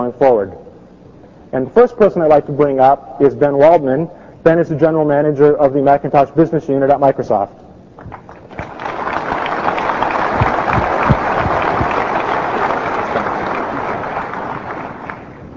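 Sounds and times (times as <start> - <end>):
speech: 0.1 - 0.6, 1.5 - 8.1
audience applause: 8.0 - 15.5.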